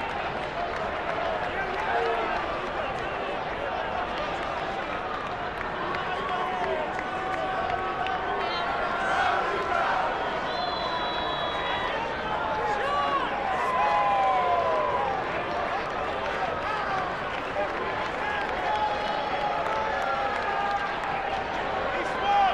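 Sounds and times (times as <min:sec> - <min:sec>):
sports arena crowd: 0:00.0 - 0:22.5.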